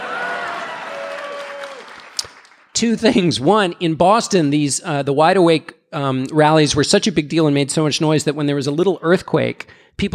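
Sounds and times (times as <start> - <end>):
audience applause: 0.0 - 2.7
speech: 2.8 - 10.1.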